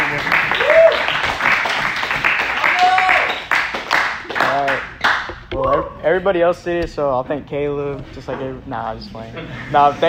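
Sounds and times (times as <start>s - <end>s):
audience clapping: 0.0s - 5.4s
speech: 6.2s - 10.0s.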